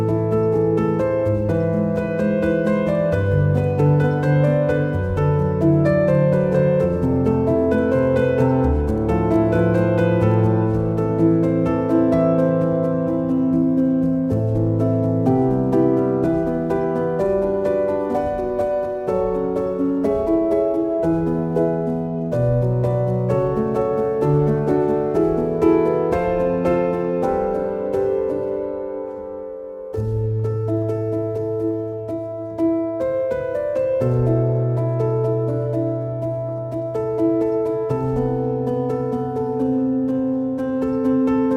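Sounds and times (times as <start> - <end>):
relaxing piano music: 0.0 - 41.5.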